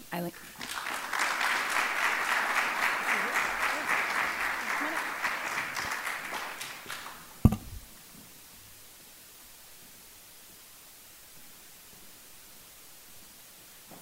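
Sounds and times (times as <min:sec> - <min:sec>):
audience applause: 0:00.4 - 0:07.4.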